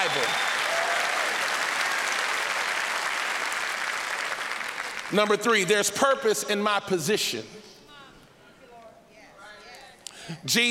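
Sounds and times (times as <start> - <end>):
speech: 0.0 - 0.5, 5.1 - 7.7, 10.3 - 10.7
audience clapping: 0.0 - 5.6.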